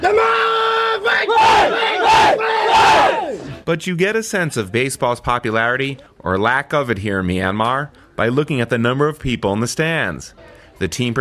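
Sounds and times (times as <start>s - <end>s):
speech: 0.0s - 0.4s, 3.7s - 11.2s
baseball team chanting cheers in unison: 0.0s - 3.5s.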